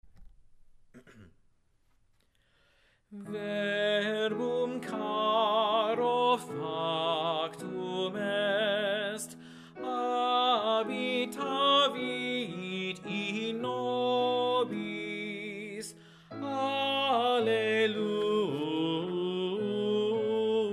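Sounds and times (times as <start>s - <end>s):
tenor singing: 3.2s - 20.7s.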